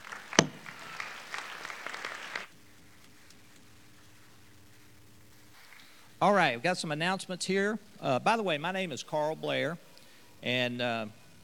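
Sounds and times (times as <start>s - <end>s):
audience clapping: 0.0s - 2.5s
speech: 6.2s - 9.8s, 10.4s - 11.2s.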